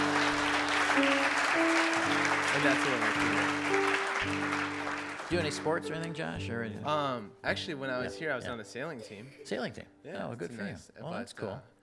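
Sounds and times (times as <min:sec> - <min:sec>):
round of applause: 0:00.0 - 0:05.7
speech: 0:02.6 - 0:11.7.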